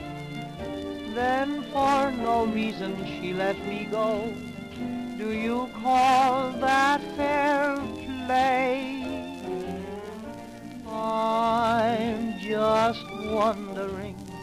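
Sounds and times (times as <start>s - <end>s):
society orchestra: 0.0s - 14.4s
singing: 1.1s - 4.4s, 5.2s - 9.6s, 10.8s - 14.4s.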